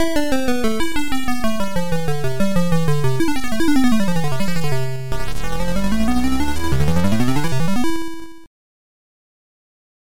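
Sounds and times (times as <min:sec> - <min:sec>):
hard techno music: 0:00.0 - 0:08.4.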